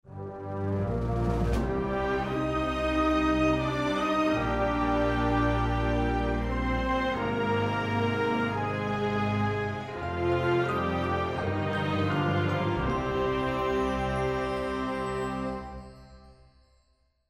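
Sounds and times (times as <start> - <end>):
music: 0.0 - 17.2.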